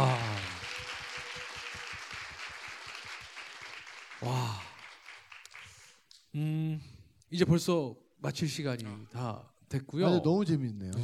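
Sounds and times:
audience applause: 0:00.0 - 0:06.0
speech: 0:04.2 - 0:04.7, 0:06.4 - 0:06.6, 0:07.3 - 0:11.0.

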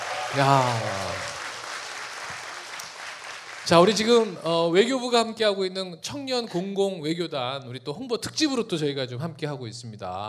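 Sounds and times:
audience applause: 0:00.0 - 0:04.6
speech: 0:00.3 - 0:01.3, 0:03.7 - 0:10.2.

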